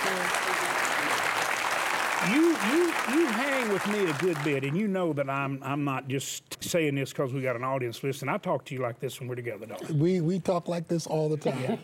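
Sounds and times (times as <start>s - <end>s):
studio audience applause welcoming a guest: 0.0s - 4.8s
speech: 2.2s - 11.8s.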